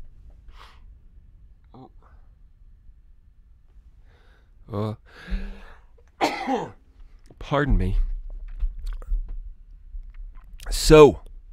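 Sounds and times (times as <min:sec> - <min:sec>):
speech: 0:04.7 - 0:05.4, 0:06.5 - 0:06.8, 0:07.5 - 0:08.1, 0:10.9 - 0:11.2
sneeze: 0:06.2 - 0:06.8.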